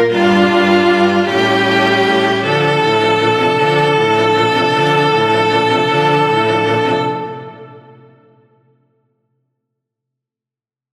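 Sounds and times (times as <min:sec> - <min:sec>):
quartet playing: 0:00.1 - 0:08.3.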